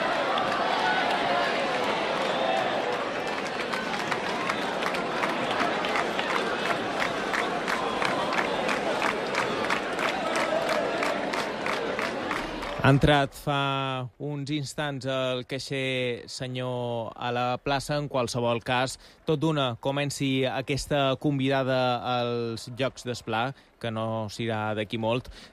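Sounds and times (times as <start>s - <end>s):
crowd roar of voices and shouts at the Jocs des Pla during the Sant Joan festival: 0.0s - 13.2s
speech: 12.8s - 25.5s.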